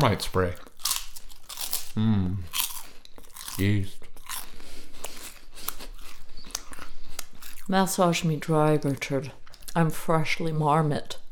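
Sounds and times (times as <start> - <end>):
speech: 0.0 - 0.7, 2.0 - 2.6, 3.6 - 4.0, 7.7 - 11.2
person biting and crunching a rice cake: 0.6 - 7.7.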